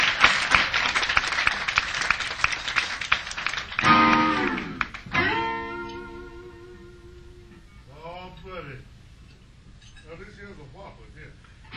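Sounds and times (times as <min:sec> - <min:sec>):
crowd applause for a band's drummer at a live show: 0:00.0 - 0:05.5.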